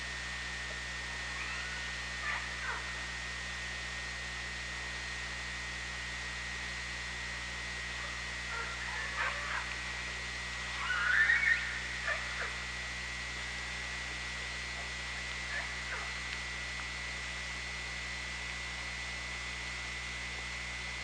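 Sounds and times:
constant whine: 0:00.0 - 0:21.0
orca squeals and warbling tones: 0:10.8 - 0:11.8.

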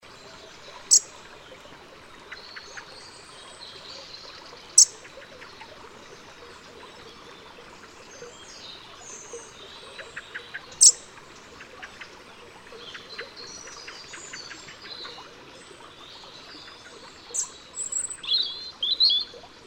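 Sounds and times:
European robin song: 0:00.0 - 0:19.5.

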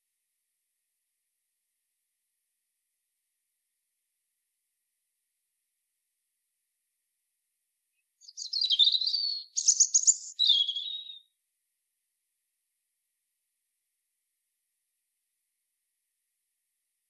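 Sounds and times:
European robin Erithacus rubecula singing: 0:08.2 - 0:11.2.

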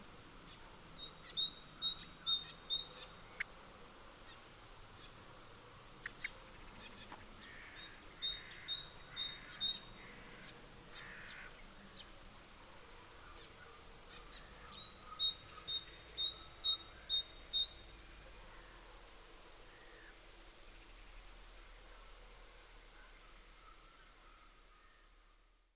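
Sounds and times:
great tit Parus major singing two-note phrases: 0:00.0 - 0:03.5, 0:04.2 - 0:18.7.

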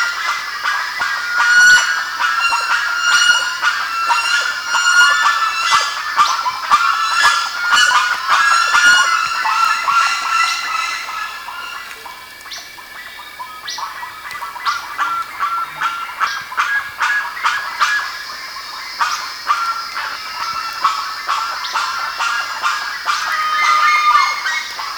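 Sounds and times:
bird calls: 0:00.0 - 0:24.9.

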